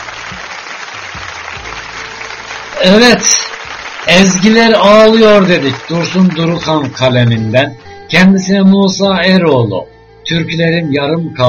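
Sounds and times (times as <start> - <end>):
audience applause: 0.0 - 7.8
speech: 2.8 - 11.4.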